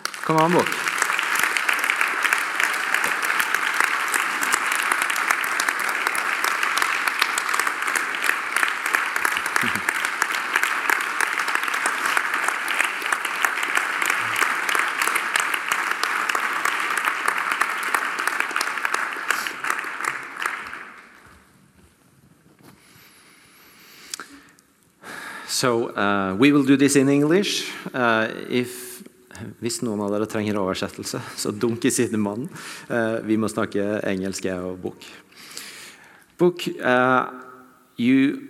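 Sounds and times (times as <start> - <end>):
audience applause: 0.0 - 21.2
speech: 0.3 - 0.8, 25.6 - 28.8, 29.6 - 35.2, 36.4 - 37.4, 38.0 - 38.4
laughter: 9.6 - 10.0.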